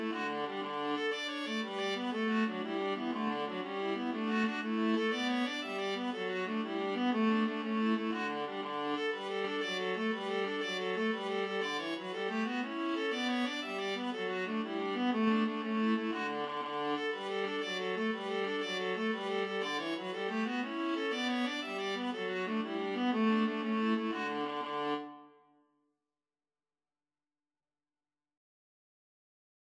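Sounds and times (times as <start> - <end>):
viola duet playing an Irish jig medley: 0.0 - 25.4.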